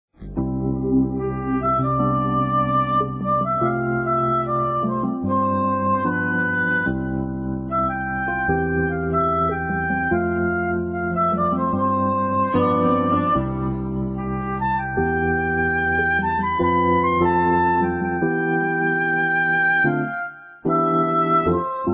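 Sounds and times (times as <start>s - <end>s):
background music: 0.2s - 21.9s.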